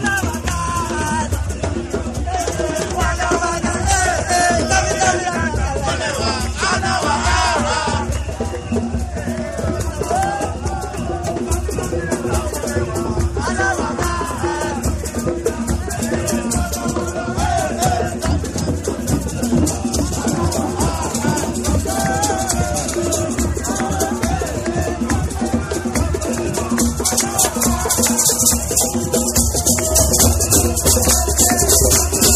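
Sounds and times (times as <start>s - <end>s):
drums at an anti-racist demonstration: 0.0s - 32.3s
people shouting at an anti-racist demonstration: 2.1s - 32.3s
whistles at an anti-racist demonstration: 8.0s - 9.1s, 31.9s - 32.3s.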